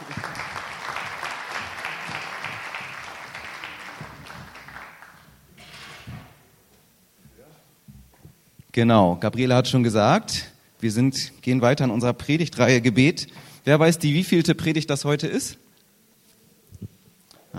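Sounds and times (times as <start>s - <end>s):
applause: 0.0s - 5.4s
speech: 8.8s - 15.6s.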